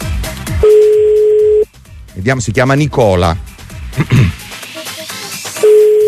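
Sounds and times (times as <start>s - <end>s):
telephone ring tone on an outgoing call: 0.6s - 1.6s, 5.6s - 6.0s
speech: 2.2s - 4.4s.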